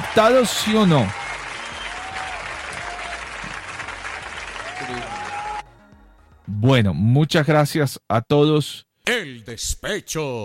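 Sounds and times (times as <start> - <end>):
loud audience applause: 0.0 - 5.7
speech: 0.2 - 1.2, 6.6 - 10.4.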